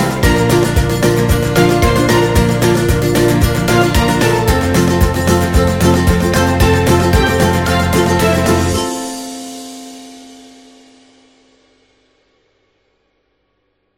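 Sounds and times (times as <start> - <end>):
happy music: 0.0 - 10.6.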